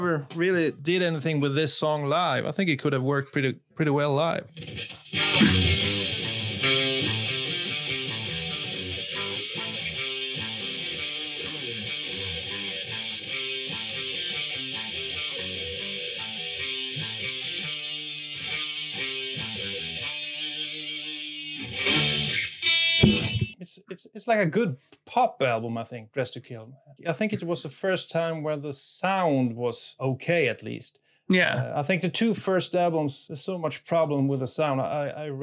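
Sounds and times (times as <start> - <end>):
speech: 0.0 - 7.4, 23.9 - 35.4
guitar riff: 4.2 - 23.6.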